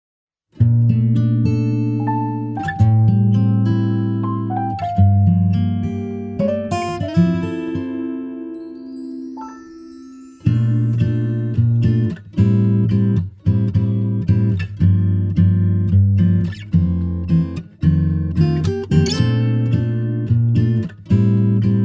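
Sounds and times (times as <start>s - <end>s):
acoustic music: 0.6s - 21.8s.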